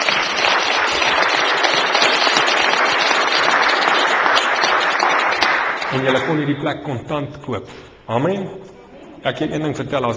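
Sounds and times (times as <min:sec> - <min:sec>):
audience clapping: 0:00.0 - 0:06.8
speech: 0:06.0 - 0:08.6, 0:09.2 - 0:10.1.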